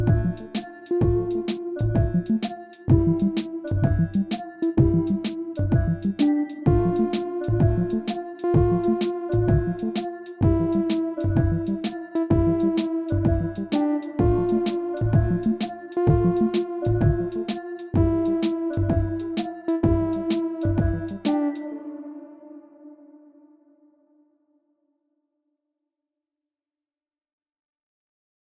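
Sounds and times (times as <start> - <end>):
dark hip-hop rap beat: 0.0 - 21.7.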